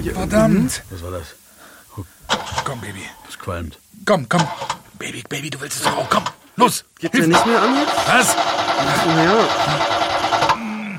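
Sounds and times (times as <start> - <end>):
speech: 0.0 - 1.4, 2.0 - 10.2
old car engine cranking and failing to start: 2.3 - 2.8, 4.4 - 4.8, 7.3 - 10.7.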